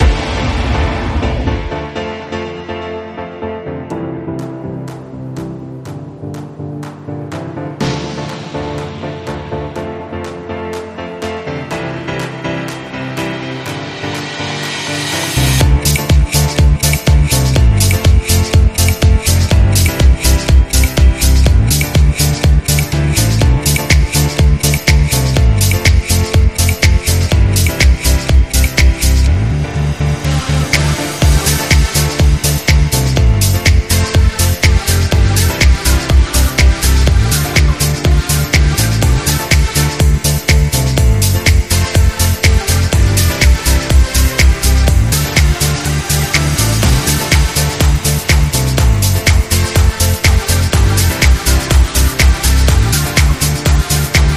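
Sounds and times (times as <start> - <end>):
deep piano instrumental: 0.0 - 54.3.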